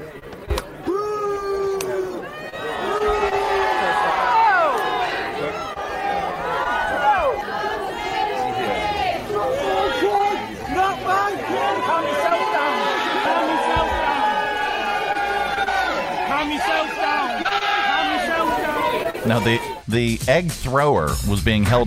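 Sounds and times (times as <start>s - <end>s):
street crowd booing: 0.7s - 19.8s
speech: 19.3s - 21.8s.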